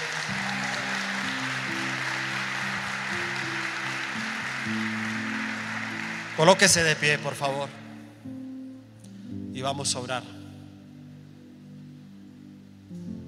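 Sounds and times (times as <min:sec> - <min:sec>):
audience applause: 0:00.0 - 0:08.0
sustained low keyboard chords: 0:00.0 - 0:13.2
speech: 0:06.4 - 0:07.8, 0:09.6 - 0:10.4.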